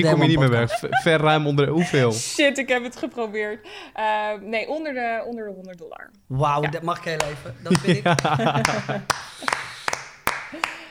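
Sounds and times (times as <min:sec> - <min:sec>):
laughter: 0:00.0 - 0:02.2, 0:07.1 - 0:09.8
speech: 0:00.0 - 0:09.7
audience clapping: 0:07.1 - 0:10.9.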